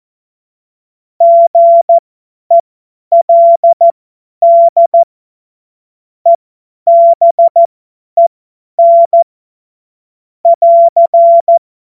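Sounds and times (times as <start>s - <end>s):
CW Morse code beeps: 1.2s - 5.1s, 6.9s - 7.7s, 8.8s - 9.2s, 10.5s - 11.6s.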